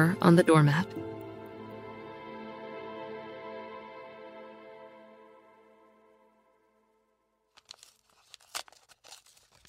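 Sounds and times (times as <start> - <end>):
speech: 0.0 - 1.0
dirty paper envelope being torn open: 7.6 - 9.6.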